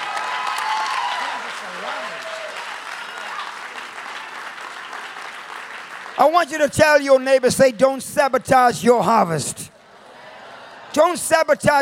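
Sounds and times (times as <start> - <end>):
audience clapping hands: 0.0 - 7.6
speech: 6.2 - 9.7, 10.9 - 11.8.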